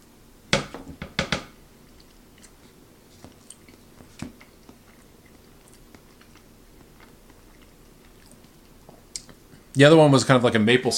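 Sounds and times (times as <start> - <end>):
person chewing a bite of chocolate chip pancake: 1.6 - 9.8
speech: 9.8 - 10.9.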